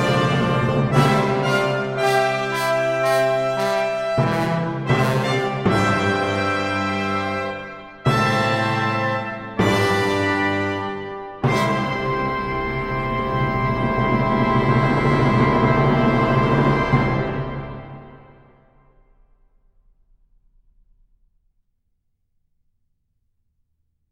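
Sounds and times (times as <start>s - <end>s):
brass ensemble fanfare: 0.0s - 18.6s.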